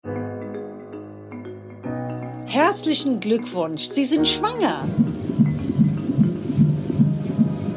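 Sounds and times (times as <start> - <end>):
speech: 2.5 - 5.1
fetal heartbeat on a Doppler monitor: 4.0 - 7.7.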